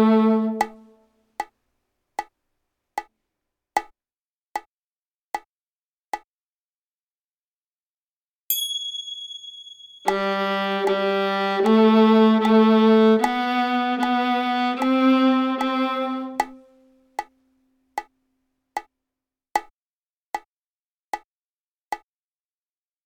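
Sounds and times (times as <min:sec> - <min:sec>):
viola G string played: 0:00.0 - 0:01.0, 0:10.0 - 0:16.9.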